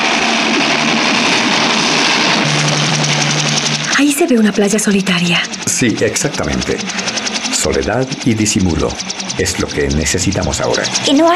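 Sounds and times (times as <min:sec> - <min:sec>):
helicopter roaring: 0:00.0 - 0:11.3
speech: 0:04.3 - 0:11.3.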